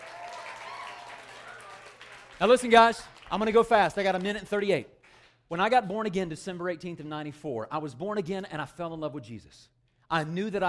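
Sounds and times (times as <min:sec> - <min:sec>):
audience clapping hands: 0:00.0 - 0:05.4
speech: 0:02.4 - 0:10.6.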